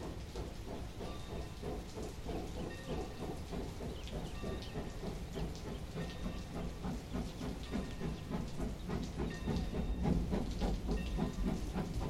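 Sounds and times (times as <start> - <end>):
steam train running: 0.0 - 12.0.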